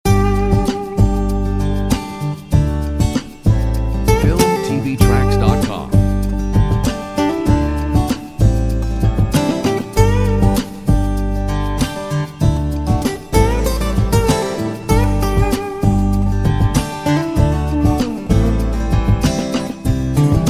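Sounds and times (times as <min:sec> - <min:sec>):
acoustic lounge music: 0:00.0 - 0:20.4.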